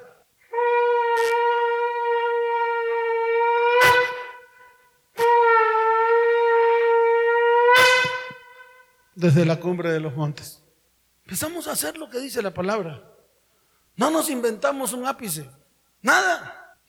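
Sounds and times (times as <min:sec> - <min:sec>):
trumpet or shofar blasts: 0:00.0 - 0:09.0
speech: 0:09.2 - 0:10.6, 0:11.3 - 0:13.1, 0:14.0 - 0:16.8.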